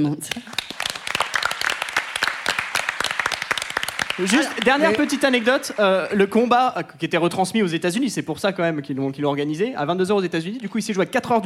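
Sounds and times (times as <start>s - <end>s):
speech: 0.0s - 0.7s, 4.2s - 11.4s
crowd applause: 0.4s - 6.6s.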